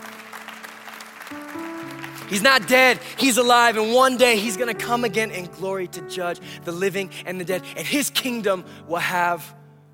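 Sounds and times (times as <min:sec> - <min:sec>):
audience clapping: 0:00.0 - 0:03.7
speech: 0:01.3 - 0:01.7, 0:02.3 - 0:09.6.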